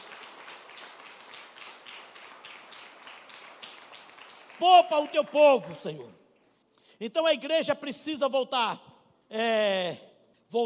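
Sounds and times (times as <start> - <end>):
audience applauding: 0.0 - 6.1
speech: 4.6 - 6.2, 7.0 - 10.6.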